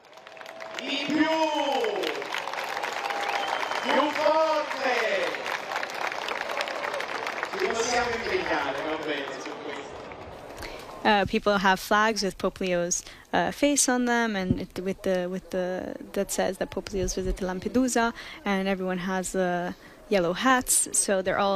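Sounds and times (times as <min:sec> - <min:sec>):
steady clapping: 0:00.0 - 0:10.8
crowd in Lampedusa cheering: 0:00.0 - 0:11.0
speech: 0:07.7 - 0:09.8, 0:11.0 - 0:21.5.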